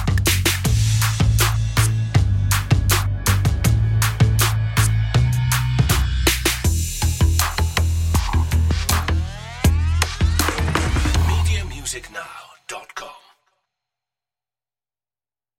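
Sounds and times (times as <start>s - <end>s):
drums: 0.0s - 12.1s
bass: 0.0s - 12.2s.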